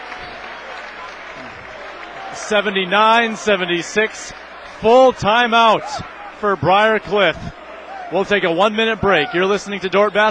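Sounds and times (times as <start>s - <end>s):
gym crowd erupting in cheers: 0.0s - 10.2s
speech: 2.4s - 10.2s.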